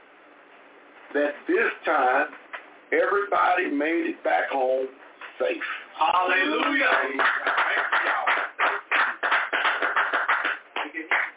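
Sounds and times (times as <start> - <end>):
speech: 1.1 - 8.4
church congregation clapping in a steady rhythmic beat: 6.3 - 11.3.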